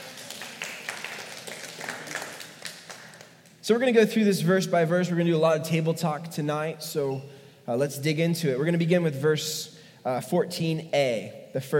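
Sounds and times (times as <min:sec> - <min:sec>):
audience golf clap: 0:00.0 - 0:03.6
speech: 0:03.7 - 0:11.7.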